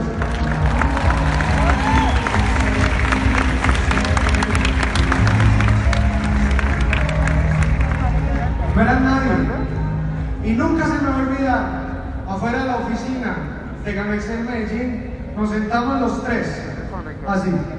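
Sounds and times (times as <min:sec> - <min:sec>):
crowd clapping: 0:00.0 - 0:09.3
murmur of voices: 0:00.0 - 0:17.7
speech: 0:13.0 - 0:16.6, 0:17.3 - 0:17.7.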